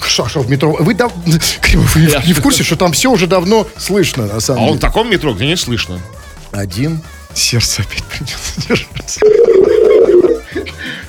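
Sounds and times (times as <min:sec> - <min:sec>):
speech: 0:00.2 - 0:11.0
laughter: 0:08.4 - 0:11.0
telephone ringback tones during a call: 0:09.2 - 0:10.5.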